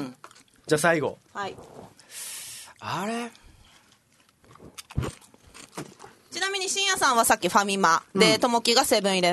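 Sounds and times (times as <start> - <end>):
crackling chews of a snack chip: 0.1 - 2.0, 3.3 - 6.3
speech: 0.7 - 3.4, 6.5 - 9.3
crunching bite into a convenience-store snack chip: 4.5 - 5.9.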